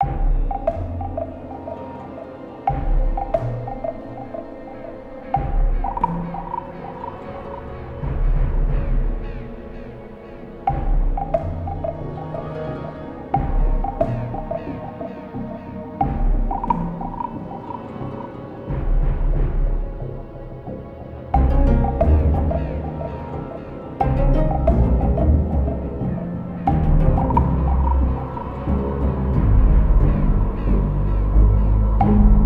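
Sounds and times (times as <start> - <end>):
forest night ambience: 0.0 - 32.4.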